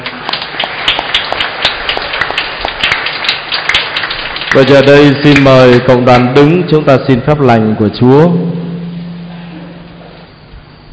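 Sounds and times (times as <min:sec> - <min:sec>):
crowd clapping: 0:00.0 - 0:06.3
speech: 0:04.5 - 0:08.6.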